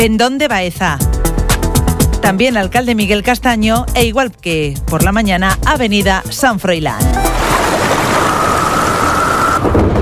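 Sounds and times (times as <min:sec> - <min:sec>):
speech: 0:00.0 - 0:01.1, 0:02.2 - 0:07.5
heavy rain: 0:07.1 - 0:10.0
thunder rumbling: 0:07.1 - 0:10.0.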